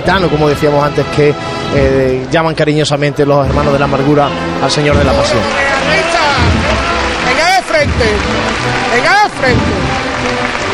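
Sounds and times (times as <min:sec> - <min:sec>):
speech: 0:00.0 - 0:06.6, 0:07.8 - 0:10.0
crowd applause during procession: 0:04.7 - 0:10.7.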